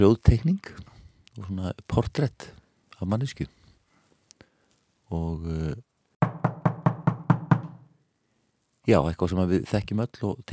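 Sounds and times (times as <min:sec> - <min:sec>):
speech: 0:00.0 - 0:03.6, 0:05.1 - 0:05.9, 0:08.8 - 0:10.5
knocking: 0:06.2 - 0:07.9.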